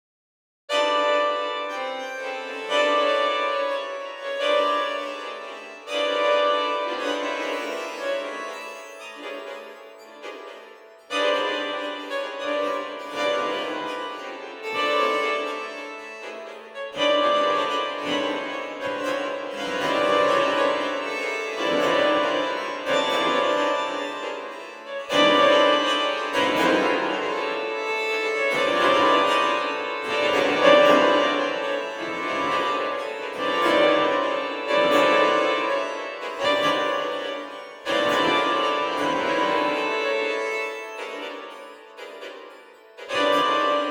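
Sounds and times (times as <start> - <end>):
strings: 0.7 - 43.9.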